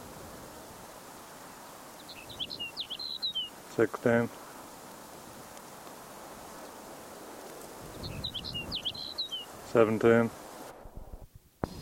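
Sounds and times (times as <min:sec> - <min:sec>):
sage sparrow song: 0:01.6 - 0:03.7, 0:07.8 - 0:09.6
speech: 0:03.8 - 0:04.4, 0:09.7 - 0:10.4.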